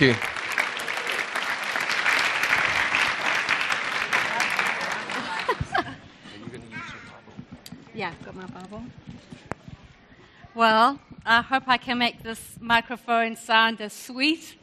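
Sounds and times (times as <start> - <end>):
speech: 0.0 - 0.3, 8.4 - 9.2, 10.6 - 14.6
audience applause for a woman invited up to speak: 0.0 - 5.9
laughter: 4.2 - 6.7.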